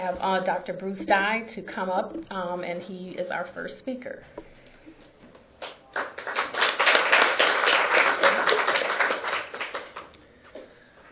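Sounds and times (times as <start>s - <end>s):
speech: 0.0s - 4.5s
audience applause: 5.6s - 10.1s.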